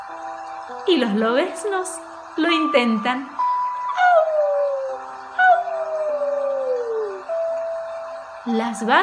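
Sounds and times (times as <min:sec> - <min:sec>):
speech: 0:00.9 - 0:03.4, 0:08.5 - 0:09.0
wolves howling: 0:03.9 - 0:08.3.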